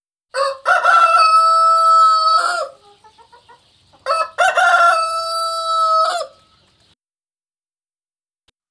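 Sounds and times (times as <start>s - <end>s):
rooster crowing: 0.3s - 3.0s, 4.0s - 6.5s.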